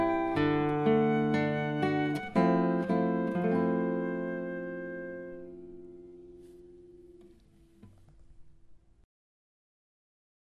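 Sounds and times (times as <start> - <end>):
flute in a stairway: 0.0 - 6.0.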